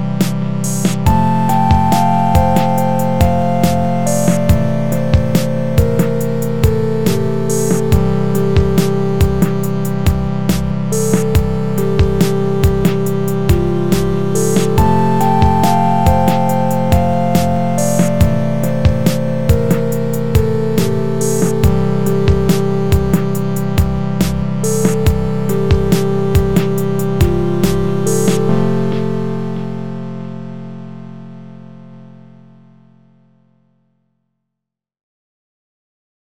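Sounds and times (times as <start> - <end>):
type beat sample: 0.2 - 29.8.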